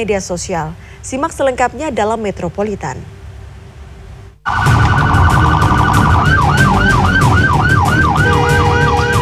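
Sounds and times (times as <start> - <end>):
speech: 0.0 - 3.2
ambulance siren: 4.5 - 9.2.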